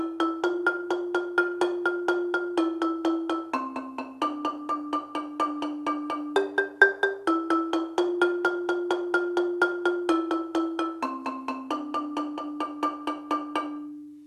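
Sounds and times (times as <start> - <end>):
low rolling marimba: 0.0 - 14.1.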